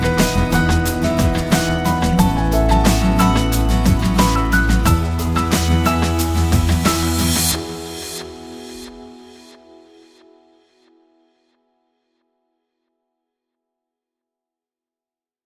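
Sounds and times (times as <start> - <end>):
acoustic music: 0.0 - 9.8.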